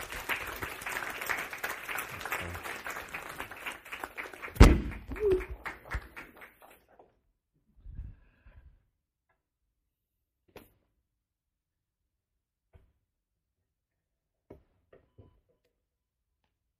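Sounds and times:
audience applause: 0:00.0 - 0:06.9.

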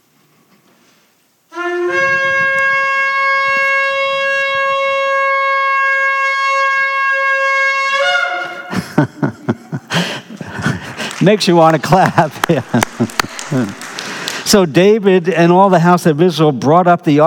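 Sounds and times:
shofar ram's horn blasts: 0:01.5 - 0:08.7
laughter: 0:08.5 - 0:14.2
speech: 0:11.2 - 0:13.8, 0:14.4 - 0:17.2.

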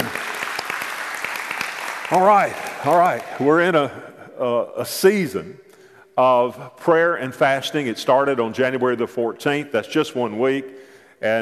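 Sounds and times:
audience applause: 0:00.0 - 0:03.9
speech: 0:02.1 - 0:05.6, 0:06.2 - 0:11.4.

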